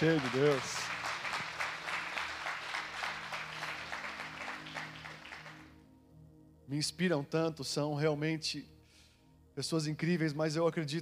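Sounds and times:
speech: 0.0 - 0.9, 6.7 - 8.8, 9.6 - 10.9
audience applause: 0.0 - 5.7.

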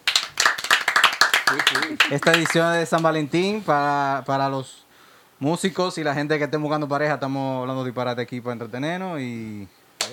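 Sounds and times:
applause: 0.0 - 3.1
speech: 1.5 - 4.8, 5.4 - 10.1.

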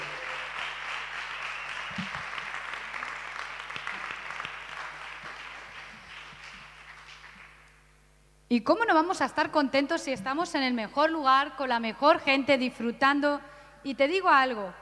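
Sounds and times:
audience applause: 0.0 - 7.7
speech: 2.0 - 2.3, 8.5 - 14.8.

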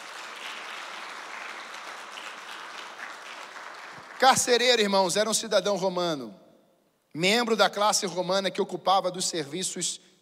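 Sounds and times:
audience applause: 0.0 - 4.6
speech: 4.2 - 6.4, 7.1 - 10.2.

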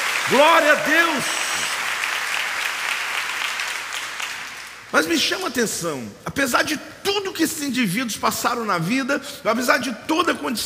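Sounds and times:
crowd applauding: 0.0 - 4.9
speech: 0.3 - 1.4, 4.9 - 10.6.

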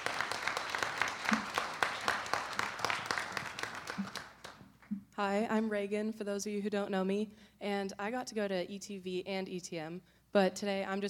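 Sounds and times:
audience applauding: 0.0 - 4.6
speech: 5.2 - 11.0.

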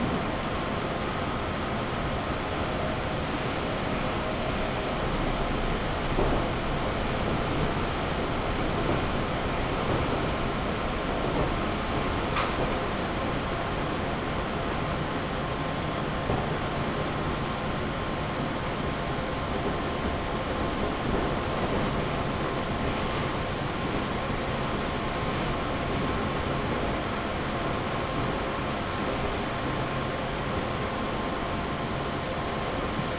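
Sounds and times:
rumble aboard a local train on the Chuo West Line: 0.0 - 33.1.

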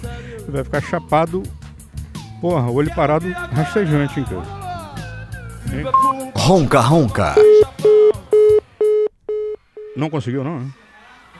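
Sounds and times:
speech: 0.5 - 1.6, 2.4 - 4.6, 5.6 - 7.6, 10.0 - 10.8
telephone busy signal: 6.0 - 6.2, 7.2 - 10.0.

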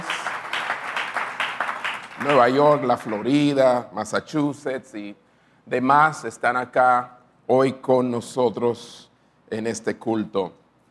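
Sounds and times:
audience applause: 0.0 - 3.4
speech: 2.2 - 10.6.

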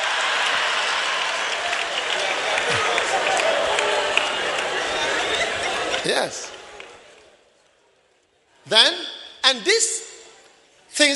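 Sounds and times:
audience clapping: 0.0 - 7.3
speech: 6.1 - 6.5, 8.7 - 9.9.

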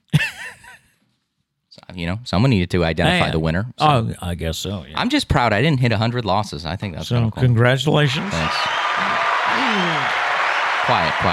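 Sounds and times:
speech: 1.9 - 8.8, 10.9 - 11.3
applause sound effect: 8.1 - 11.3.

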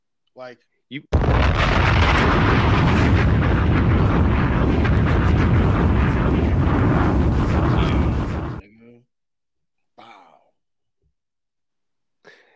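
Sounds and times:
speech: 0.4 - 2.5
soundboard bomb explosion effect: 1.2 - 8.6.

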